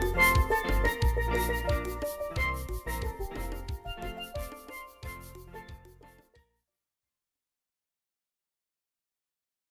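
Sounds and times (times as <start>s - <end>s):
steel: 0.0s - 5.8s.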